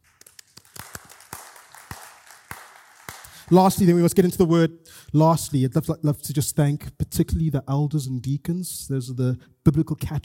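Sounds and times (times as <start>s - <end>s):
audience applause: 0.0s - 3.8s
speech: 3.5s - 10.2s.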